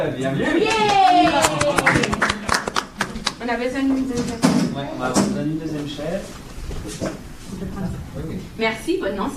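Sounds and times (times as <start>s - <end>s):
speech: 0.2s - 0.8s, 3.5s - 9.3s
audience applauding a volunteer: 0.6s - 3.4s.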